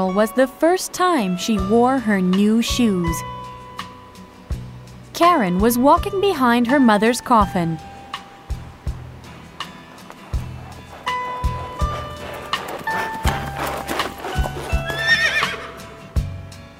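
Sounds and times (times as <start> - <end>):
speech: 0.0 - 3.4, 5.2 - 7.9
horse hooves clip-clopping as a large horse-drawn carriage passes: 7.4 - 16.3
horse whinnying: 10.0 - 16.0.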